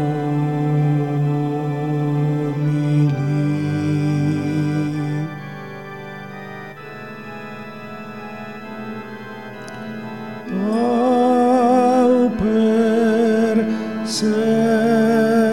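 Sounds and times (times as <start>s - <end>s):
tenor choir singing: 0.0s - 5.7s, 10.4s - 15.5s.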